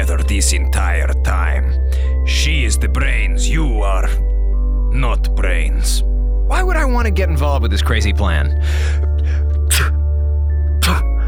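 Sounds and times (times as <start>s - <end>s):
steady tonal background: 0.0s - 11.2s
speech: 0.4s - 1.6s, 2.4s - 4.3s, 4.9s - 9.9s
person sneezing or coughing from allergies: 9.7s - 10.0s, 10.8s - 11.1s.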